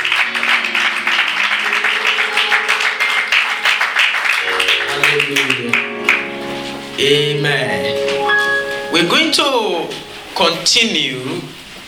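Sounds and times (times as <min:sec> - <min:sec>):
audience applauding the choir: 0:00.0 - 0:06.4
speech: 0:07.0 - 0:08.1, 0:09.0 - 0:11.6.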